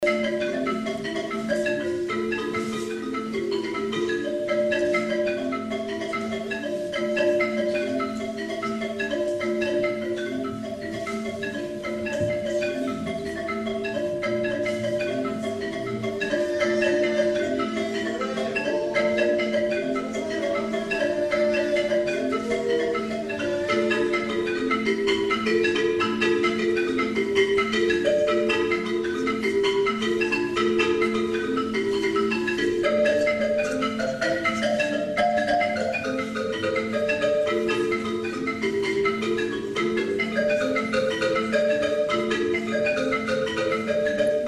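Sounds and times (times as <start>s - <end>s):
bambuco music: 0.0s - 44.4s.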